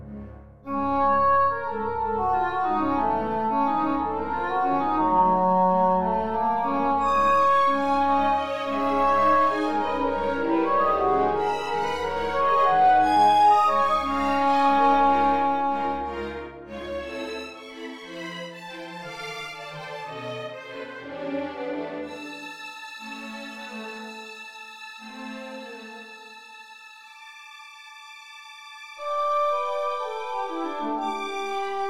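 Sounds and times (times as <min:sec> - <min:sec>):
strings playing a pastoral: 0:00.0 - 0:31.8
English horn playing a pastoral: 0:00.7 - 0:16.7, 0:29.0 - 0:31.8.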